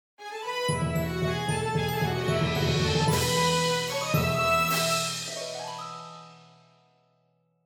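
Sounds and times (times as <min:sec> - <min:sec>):
fanfare: 0:00.7 - 0:06.5.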